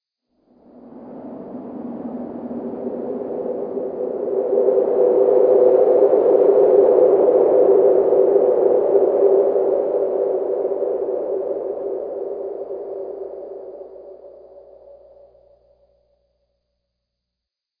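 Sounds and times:
wind: 0.3s - 15.8s.

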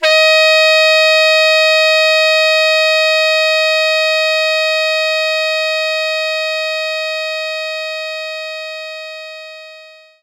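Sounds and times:
tenor saxophone playing E flat 4: 0.0s - 10.2s.

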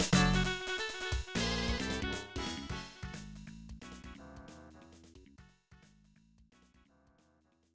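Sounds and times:
waltz music: 0.1s - 3.3s.

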